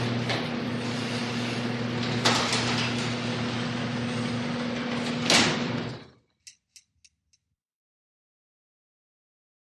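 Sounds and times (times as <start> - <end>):
electric garage door closing and opening: 0.0 - 6.2.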